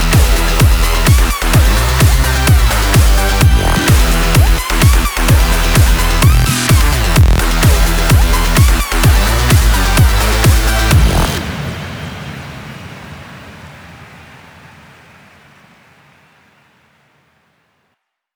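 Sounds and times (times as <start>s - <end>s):
epic EDM show music at 128 bpm: 0.0s - 11.4s.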